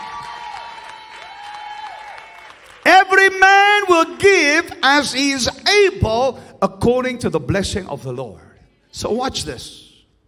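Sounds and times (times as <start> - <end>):
audience clapping: 0.0 - 4.8
speech: 3.9 - 9.8.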